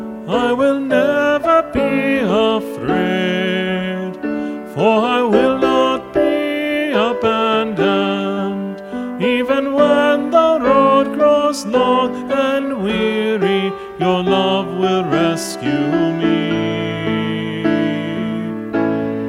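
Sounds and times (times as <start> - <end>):
choir singing all parts: 0.3 - 19.2.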